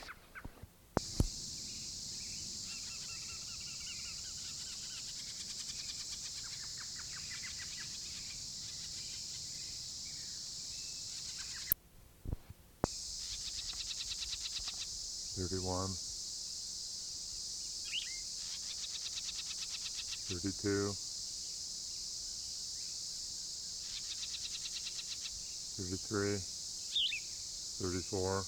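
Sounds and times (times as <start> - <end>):
steady high insect drone: 0.0 - 11.8, 12.8 - 28.4
two parent birds giving harsh alarm calls near a nest in a ponderosa pine: 2.3 - 10.2, 10.9 - 11.8, 12.9 - 16.0, 17.8 - 20.9, 23.8 - 28.4.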